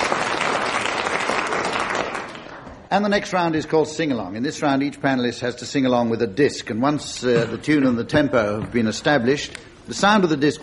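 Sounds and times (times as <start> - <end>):
audience applause: 0.0 - 2.7
speech: 2.9 - 10.6.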